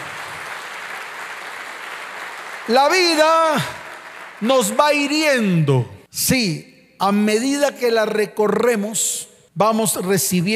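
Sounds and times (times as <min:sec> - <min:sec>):
audience applause: 0:00.0 - 0:05.1
speech: 0:02.6 - 0:03.8, 0:04.4 - 0:10.5.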